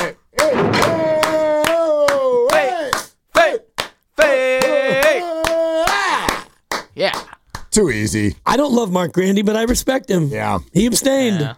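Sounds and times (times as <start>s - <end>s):
hand clapping: 0.0s - 7.7s
speech: 7.8s - 11.5s.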